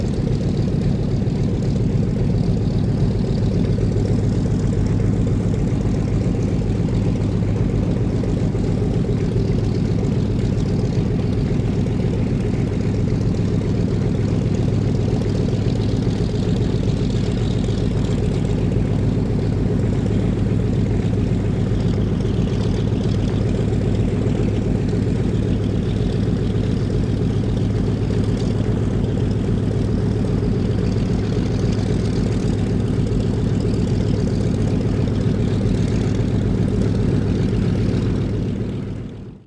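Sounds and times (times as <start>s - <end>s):
1945 Douglas DC3 commercial aircraft taxiing: 0.0s - 39.4s.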